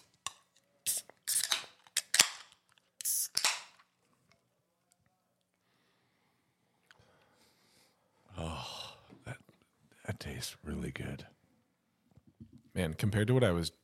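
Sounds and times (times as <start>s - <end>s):
beer can cracking open: 0.0s - 3.9s
speech: 10.3s - 11.4s, 12.8s - 13.8s.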